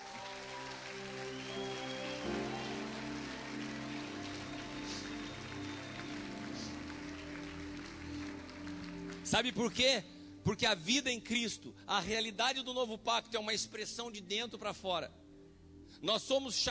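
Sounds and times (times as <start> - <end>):
audience applause: 0.0 - 9.7
speech: 9.3 - 15.2, 15.9 - 16.6.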